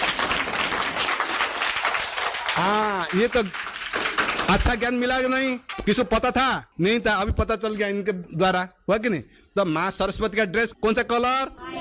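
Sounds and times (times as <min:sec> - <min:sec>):
audience clapping at a Brahma Kumaris spiritual program: 0:00.0 - 0:06.2
speech: 0:02.6 - 0:03.7, 0:04.5 - 0:11.7.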